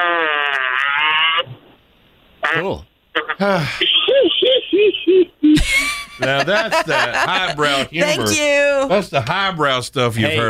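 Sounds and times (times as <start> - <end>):
fart: 0.0 - 1.8
speech: 2.6 - 4.1, 4.8 - 10.4
laughter: 3.4 - 8.4.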